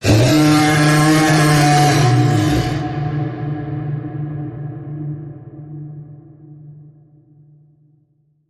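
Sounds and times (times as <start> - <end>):
beast creature groaning: 0.0 - 3.1.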